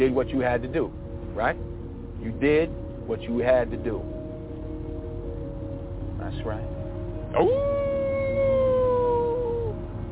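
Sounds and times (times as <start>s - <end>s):
speech: 0.0s - 4.1s, 6.2s - 7.8s
low hum: 0.0s - 10.0s
person imitating a wolf howl: 7.3s - 9.9s.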